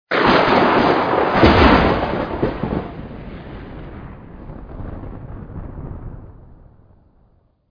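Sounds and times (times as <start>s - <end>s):
lightning thunder ringtone: 0.1s - 7.7s.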